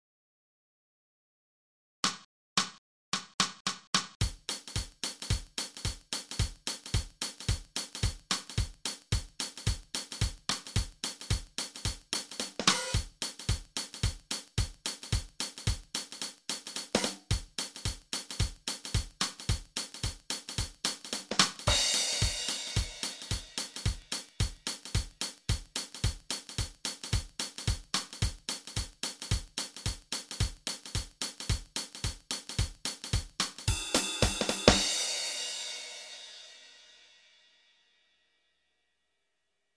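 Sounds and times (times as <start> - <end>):
drum track: 2.0 - 37.2.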